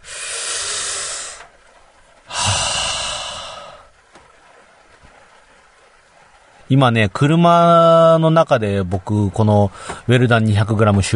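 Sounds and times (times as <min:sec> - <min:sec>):
deep breath: 0:00.0 - 0:01.5, 0:02.3 - 0:03.9, 0:09.7 - 0:10.0
speech: 0:06.7 - 0:11.1.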